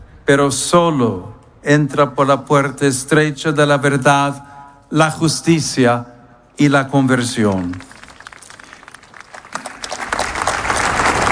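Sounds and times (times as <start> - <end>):
speech: 0.3 - 7.9
applause across a crowded plaza: 7.6 - 11.3.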